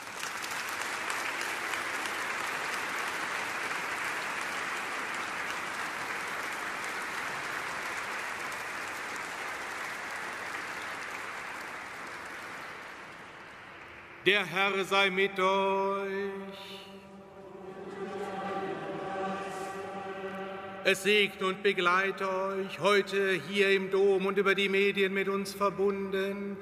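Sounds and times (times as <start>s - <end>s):
audience applause: 0.0s - 14.2s, 17.2s - 21.2s
speech: 14.3s - 16.9s, 20.9s - 26.6s.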